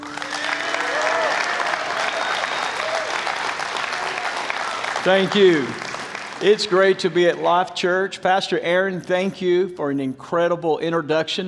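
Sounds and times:
church congregation at Life Church applauding a guest pastor: 0.0 - 7.7
speech: 5.0 - 11.4.

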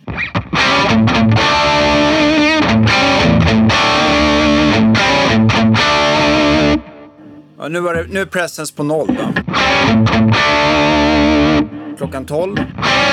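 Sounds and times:
electric guitar riff through distortion pedal: 0.0 - 8.2, 9.1 - 13.1
speech: 7.7 - 11.0, 12.0 - 13.1.

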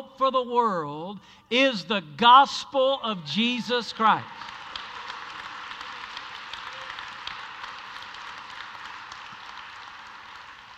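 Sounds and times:
speech: 0.2 - 4.6
audience applause: 4.2 - 10.7.

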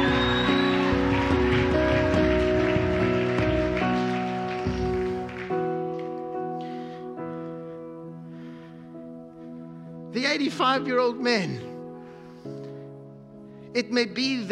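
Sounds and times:
crowd clapping: 0.0 - 6.8
sustained organ-like chords: 0.0 - 12.4
speech: 10.3 - 11.7, 13.8 - 14.5.

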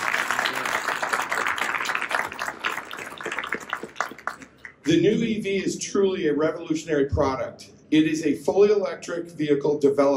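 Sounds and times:
audience applause: 0.0 - 4.8
speech: 4.9 - 10.1.

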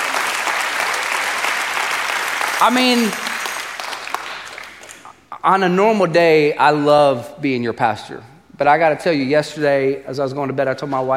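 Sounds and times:
audience clapping: 0.0 - 5.2
speech: 2.6 - 3.2, 5.4 - 11.1.

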